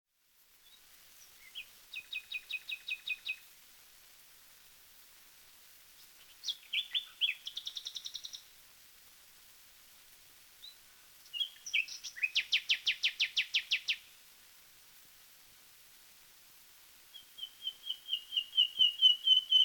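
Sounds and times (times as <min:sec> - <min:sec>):
background hiss: 0:00.1 - 0:19.6
common nightingale singing: 0:00.6 - 0:03.5, 0:06.0 - 0:08.5, 0:10.6 - 0:14.1, 0:17.1 - 0:19.6.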